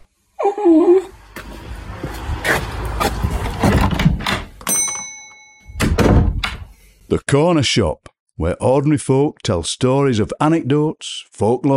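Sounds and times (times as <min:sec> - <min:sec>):
dog whimpering: 0:00.4 - 0:01.2
clattering movement: 0:01.3 - 0:06.7
speech: 0:07.1 - 0:11.7.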